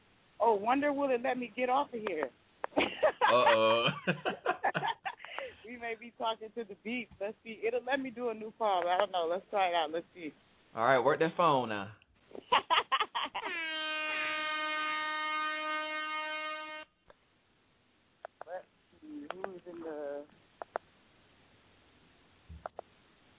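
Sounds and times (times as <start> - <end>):
speech: 0.4 - 5.0, 5.7 - 13.6
laughter: 2.7 - 5.5, 12.4 - 13.6
air horn sound effect: 13.5 - 17.0.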